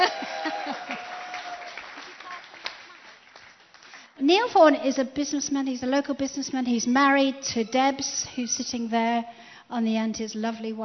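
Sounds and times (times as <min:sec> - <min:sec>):
audience applause: 0:00.0 - 0:04.1
speech: 0:04.3 - 0:10.8.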